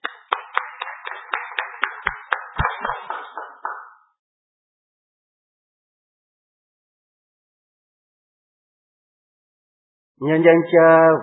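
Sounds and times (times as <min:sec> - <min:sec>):
rhythmic clapping congratulating newly ordained priests at a church service: 0:00.0 - 0:04.1
speech: 0:10.2 - 0:11.2.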